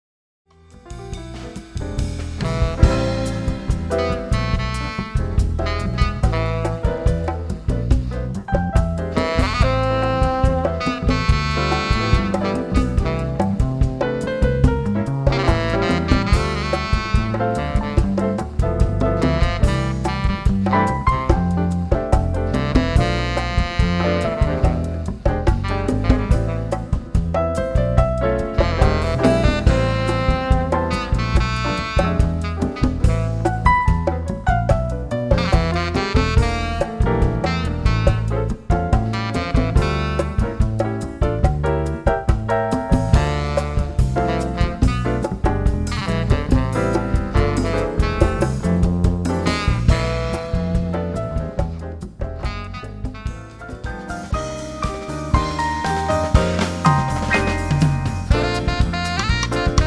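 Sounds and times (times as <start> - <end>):
retro jazz quartet playing: 0.6 - 59.8.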